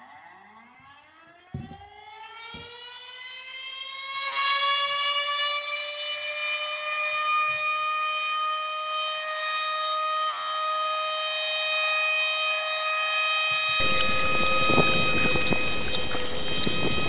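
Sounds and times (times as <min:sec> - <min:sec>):
siren sound effect: 0:00.0 - 0:17.0
low thumps: 0:13.8 - 0:17.0.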